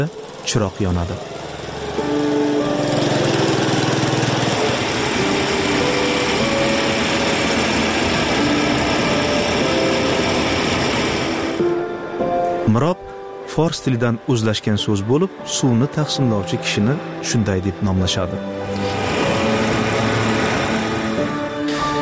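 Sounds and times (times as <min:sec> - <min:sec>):
speech: 0:00.0 - 0:01.4, 0:12.7 - 0:13.0, 0:13.6 - 0:19.0
water distributor's motorcycle engine at dawn in Samarqandlik village, Batken: 0:00.0 - 0:11.7, 0:18.6 - 0:21.7.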